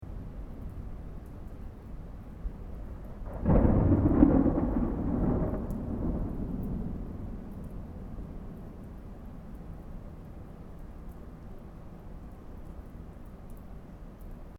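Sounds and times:
distant thunder: 3.0s - 9.8s.

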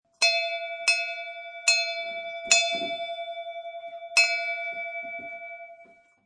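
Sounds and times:
multiple bell rings: 0.2s - 6.2s.

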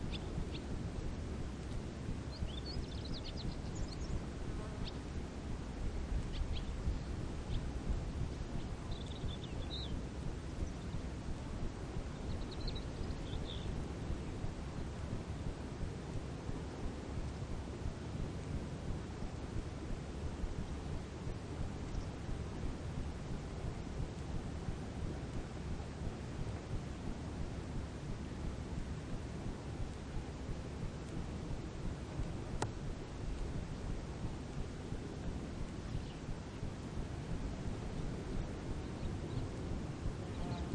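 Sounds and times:
small birds tweeting by the sea: 0.0s - 0.8s, 1.5s - 15.0s, 19.1s - 19.8s, 20.6s - 22.8s, 35.2s - 37.0s, 37.9s - 40.7s
faint ocean: 0.0s - 40.7s
insects: 0.0s - 40.7s.

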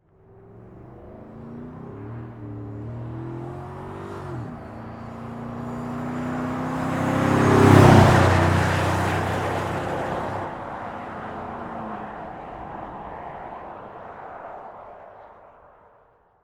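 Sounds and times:
Chevy Silverado truck passing by fast: 0.3s - 14.2s.

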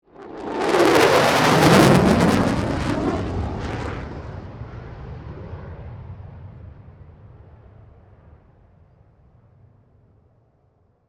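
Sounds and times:
F18 jet fast fly-by: 0.1s - 8.9s.

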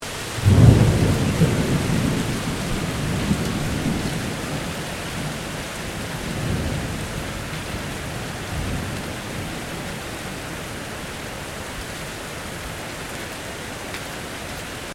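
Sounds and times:
severe hail storm: 0.0s - 11.0s
heavy rain: 0.0s - 14.9s
medium thunder: 0.3s - 10.0s.

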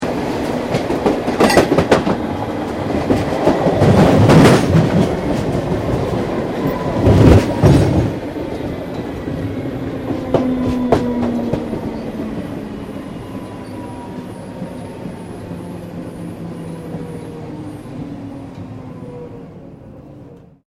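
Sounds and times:
Melbourne train interior while stopping: 0.0s - 20.6s.

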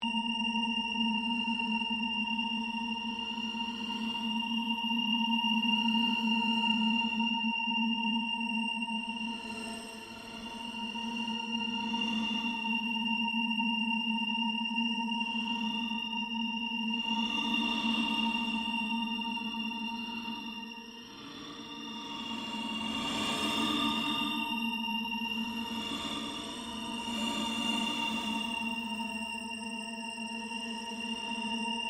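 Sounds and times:
drones: 0.1s - 31.8s.

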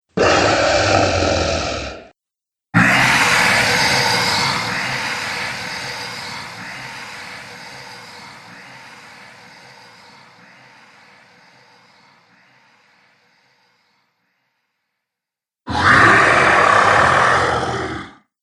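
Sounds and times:
dragon monster sounds: 0.1s - 2.1s, 2.8s - 5.0s, 15.7s - 18.2s.

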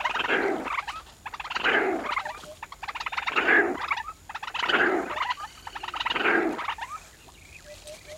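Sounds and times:
hippopotamus grunting and snorting: 0.1s - 0.7s, 1.6s - 2.2s, 3.3s - 3.9s, 4.6s - 6.7s.

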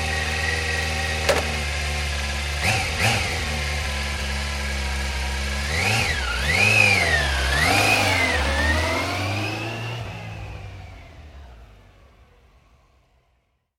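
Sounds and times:
motorcycle engine idling: 0.0s - 5.7s
motorcycle engine starting: 0.0s - 13.1s.

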